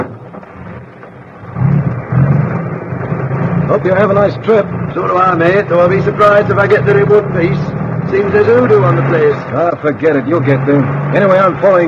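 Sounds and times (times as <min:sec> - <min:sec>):
truck driving away: 0:00.0 - 0:11.8
speech: 0:03.8 - 0:11.8.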